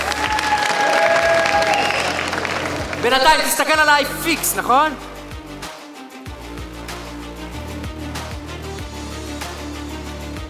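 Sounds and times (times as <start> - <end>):
audience applause: 0.0 - 3.8
speech: 3.0 - 5.1.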